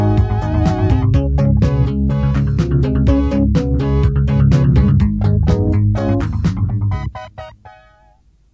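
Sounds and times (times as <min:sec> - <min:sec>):
piano rhythm on tape: 0:00.0 - 0:08.5.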